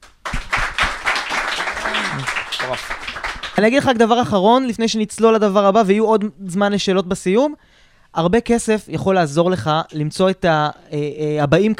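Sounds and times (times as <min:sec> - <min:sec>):
live audience applause: 0:00.0 - 0:03.7
speech: 0:02.2 - 0:11.7.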